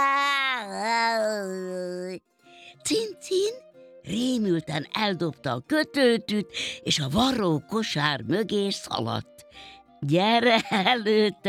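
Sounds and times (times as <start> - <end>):
person imitating a cat meow: 0.0 - 2.2
speech: 2.8 - 11.4.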